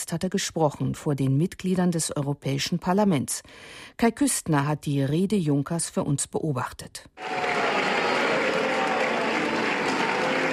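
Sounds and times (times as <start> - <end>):
speech: 0.1 - 7.8
applause in a parliamentary chamber: 7.2 - 10.5
crowd booing in a parliamentary chamber: 7.2 - 10.5.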